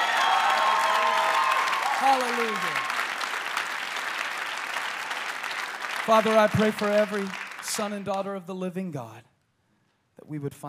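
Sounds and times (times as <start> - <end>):
crowd clapping: 0.0 - 8.5
speech: 2.0 - 2.9, 6.1 - 9.3, 10.2 - 10.6.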